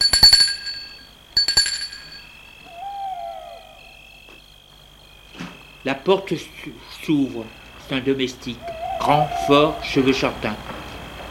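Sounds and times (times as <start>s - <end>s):
doorbell ringing at front door: 0.0s - 2.4s
speech: 5.8s - 10.7s.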